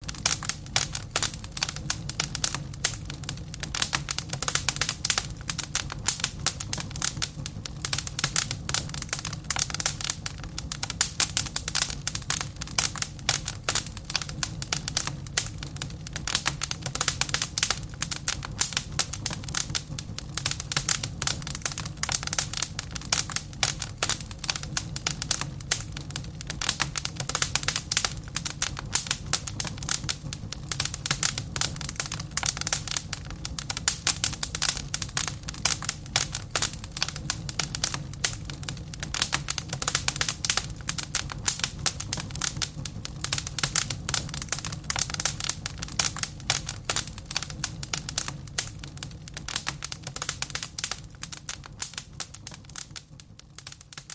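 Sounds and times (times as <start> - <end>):
ambient bonfire: 0.0 - 54.1.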